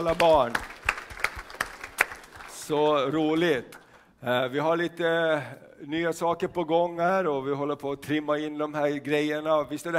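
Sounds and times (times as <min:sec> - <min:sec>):
speech: 0:00.0 - 0:00.7, 0:02.7 - 0:09.9
applause: 0:00.0 - 0:04.0.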